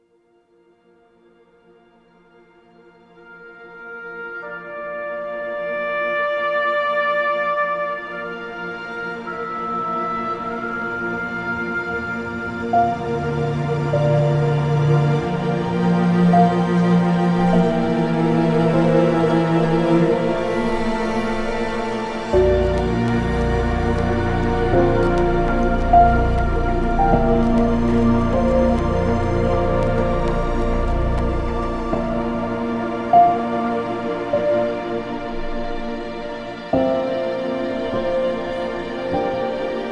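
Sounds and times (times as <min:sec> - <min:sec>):
orchestral piano score: 0:02.8 - 0:39.9.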